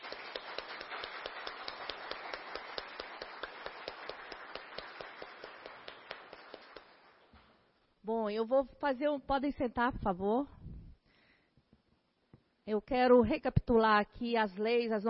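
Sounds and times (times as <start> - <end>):
crowd applause: 0.0 - 7.2
speech: 8.1 - 10.6, 12.7 - 15.0.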